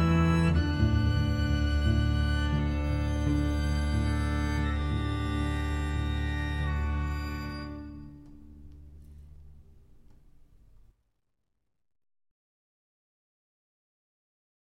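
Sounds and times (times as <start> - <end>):
French adventure orchestra music: 0.0 - 9.0.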